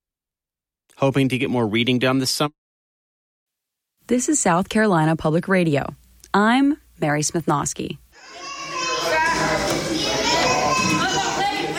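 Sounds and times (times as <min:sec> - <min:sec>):
speech: 0:01.0 - 0:02.6, 0:04.1 - 0:08.4
children playing in an indoor playhouse, shouting and squealing: 0:08.2 - 0:11.7.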